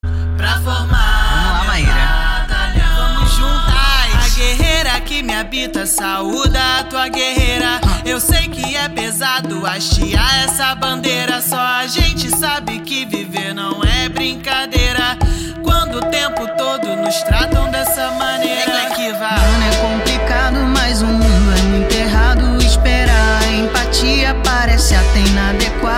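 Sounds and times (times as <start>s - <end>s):
funk music: 0.7s - 25.9s.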